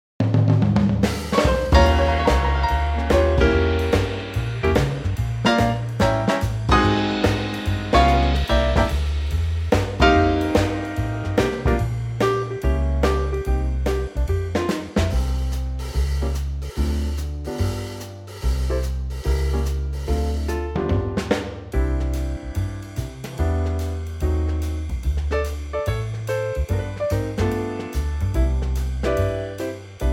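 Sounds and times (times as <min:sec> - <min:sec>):
trio music in C: 0:01.1 - 0:30.1.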